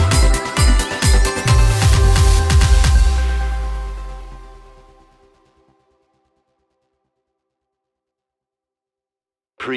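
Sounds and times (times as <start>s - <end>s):
Christmas EDM: 0.0s - 5.6s.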